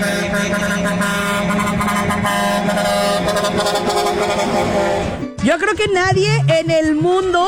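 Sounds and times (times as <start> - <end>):
busy traffic noise: 0.0 - 5.4
novelty musical car horn playing a melodic tune: 0.0 - 5.4
speech: 5.6 - 7.4.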